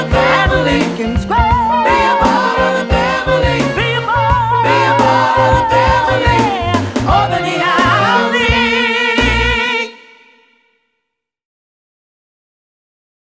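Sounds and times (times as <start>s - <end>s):
choir singing: 0.0s - 10.6s.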